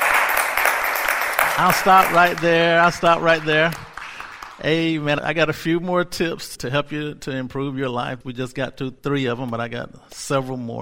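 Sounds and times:
audience hand clapping: 0.0s - 5.0s
speech: 1.6s - 3.8s, 4.6s - 10.8s.

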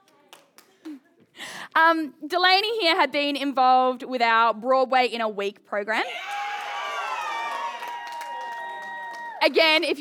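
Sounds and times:
speech: 1.8s - 6.2s, 9.4s - 9.9s
audience cheering with whoops: 6.1s - 9.4s.

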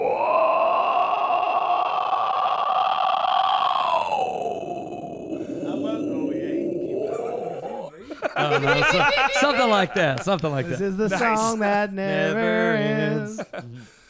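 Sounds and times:
long inhaled vocal growl: 0.0s - 8.2s
laughter: 5.4s - 14.0s
speech: 8.6s - 13.7s.

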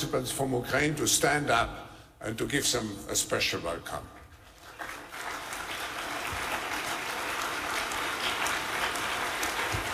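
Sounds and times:
speech: 0.0s - 4.2s
audience clapping: 4.4s - 9.9s.

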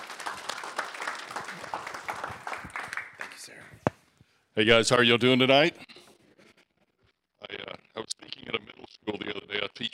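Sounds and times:
audience applause welcoming a speaker: 0.0s - 3.4s
speech: 4.6s - 5.8s.

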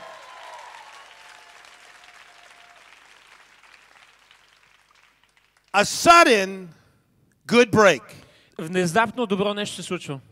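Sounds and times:
audience applause: 0.0s - 5.9s
speech: 5.8s - 6.8s, 7.5s - 10.3s.

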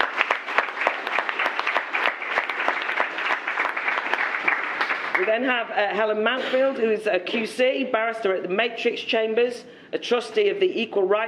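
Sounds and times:
audience applause welcoming a speaker: 0.0s - 5.4s
speech: 5.3s - 11.2s.

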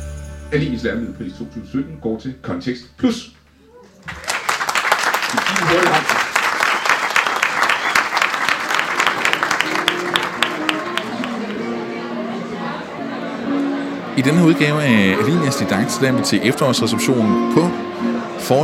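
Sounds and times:
speech: 0.5s - 3.4s, 14.2s - 18.6s
audience applause at an award presentation: 3.9s - 12.0s
voices chattering: 10.6s - 18.6s.

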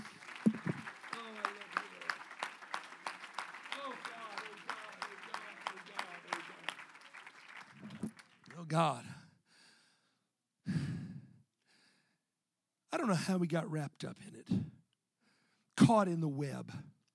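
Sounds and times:
audience clapping hands: 0.0s - 8.7s
speech: 8.7s - 9.1s, 13.0s - 14.6s, 15.9s - 16.9s.

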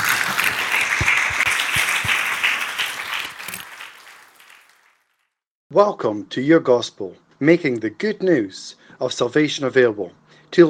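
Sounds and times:
audience applause: 0.0s - 5.1s
speech: 5.8s - 10.6s.

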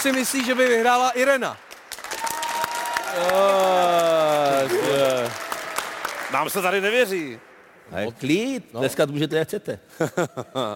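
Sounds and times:
speech: 0.0s - 1.7s, 3.1s - 5.4s, 6.3s - 10.7s
audience clapping: 0.0s - 7.4s
voice-like cheer: 2.0s - 6.2s.

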